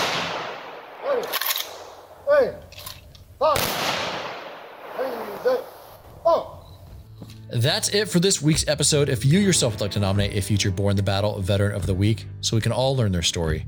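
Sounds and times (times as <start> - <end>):
rifle volley fired in honor of an army veteran: 0.0 - 6.6
person calling firing commands: 0.9 - 2.7, 3.4 - 4.0, 4.8 - 6.6
speech: 1.2 - 1.4, 2.4 - 2.8, 3.4 - 4.0, 7.5 - 13.6.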